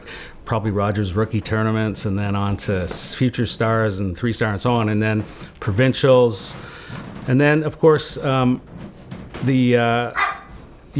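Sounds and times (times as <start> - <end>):
speech: 0.5 - 10.3
dog Coco whining bark and yelp: 10.2 - 10.6.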